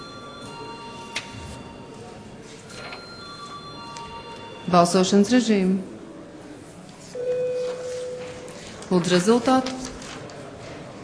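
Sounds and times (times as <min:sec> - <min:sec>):
parliament chamber bell ringing to call a vote: 0:00.0 - 0:05.3
low murmur of the room: 0:00.0 - 0:11.0
speech: 0:04.7 - 0:05.9, 0:09.0 - 0:09.8.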